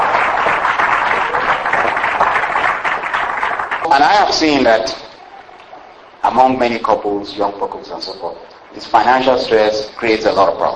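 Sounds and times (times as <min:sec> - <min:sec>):
audience applauding with hand claps: 0:00.0 - 0:04.4
speech: 0:03.9 - 0:05.0, 0:06.3 - 0:10.7.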